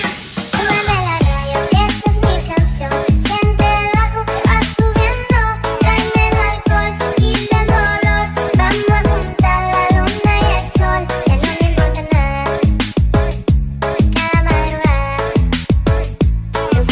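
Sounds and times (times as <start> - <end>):
hardstyle remix music: 0.0 - 16.8.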